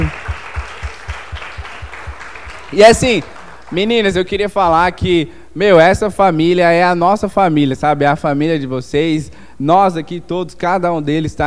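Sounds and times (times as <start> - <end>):
audience applause: 0.0 - 4.3
speech: 2.7 - 11.4.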